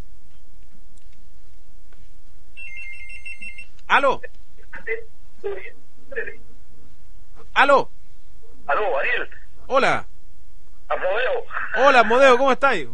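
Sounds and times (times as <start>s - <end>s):
telephone ringing: 2.6s - 3.7s
speech: 4.0s - 6.5s, 7.6s - 7.9s, 8.8s - 10.1s, 10.9s - 12.9s.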